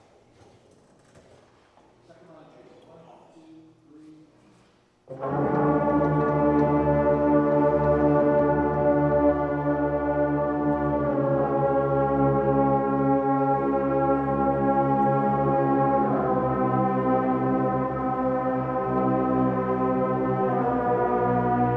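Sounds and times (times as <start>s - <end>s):
brass music: 5.1s - 21.7s.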